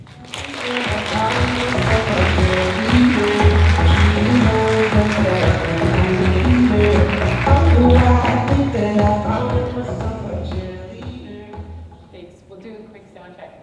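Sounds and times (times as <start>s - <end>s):
audience applause: 0.0s - 9.2s.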